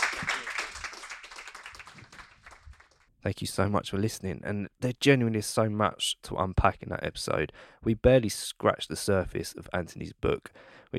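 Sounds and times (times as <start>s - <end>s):
audience applause: 0.0s - 3.0s
speech: 3.2s - 10.9s.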